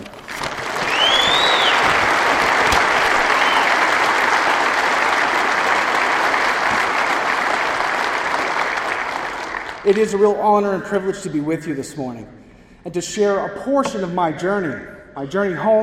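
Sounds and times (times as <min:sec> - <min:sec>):
audience clapping: 0:00.0 - 0:10.2
speech: 0:09.9 - 0:15.8.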